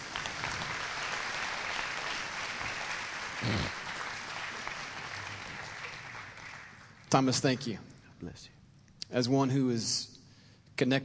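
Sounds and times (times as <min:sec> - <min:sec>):
crowd applause: 0:00.0 - 0:07.1
speech: 0:07.1 - 0:10.1, 0:10.8 - 0:11.0.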